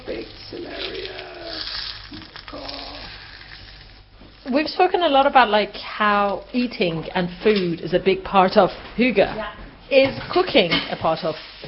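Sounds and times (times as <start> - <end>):
butter browning in a pan: 0.0 - 4.6
speech: 4.5 - 11.6.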